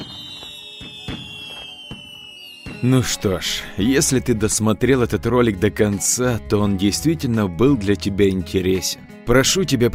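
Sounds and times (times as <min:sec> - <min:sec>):
steady high whistling tone: 0:00.0 - 0:03.0
fireworks exploding: 0:00.0 - 0:03.2
speech: 0:02.8 - 0:09.9.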